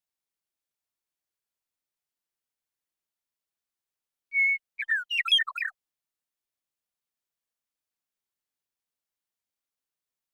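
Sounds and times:
Western meadowlark singing: 4.3 - 5.8.

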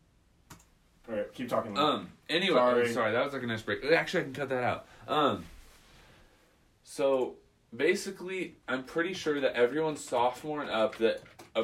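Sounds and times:
clicking on a computer while checking a schedule: 0.4 - 0.8, 10.0 - 11.6
speech: 1.1 - 5.6, 6.8 - 11.6.

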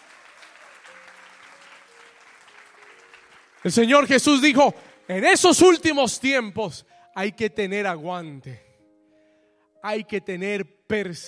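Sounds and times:
audience applause: 0.0 - 5.0
speech: 3.6 - 8.6, 9.8 - 11.2.

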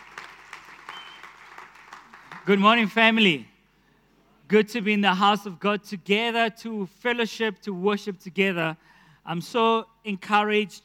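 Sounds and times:
audience clapping: 0.0 - 3.0
speech: 2.4 - 3.5, 4.5 - 10.8.

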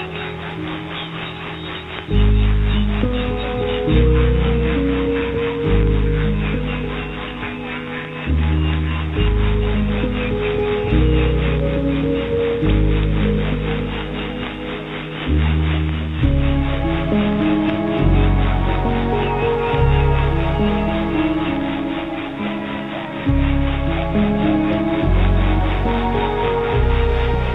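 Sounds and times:
shortwave radio warbling low tones at night: 0.0 - 27.5
static hiss and buzzing: 0.0 - 27.5.

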